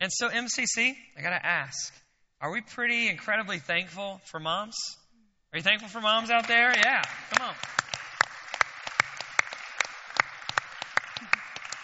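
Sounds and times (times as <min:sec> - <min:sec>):
speech: 0:00.0 - 0:07.9
weak audience clapping: 0:06.2 - 0:11.8.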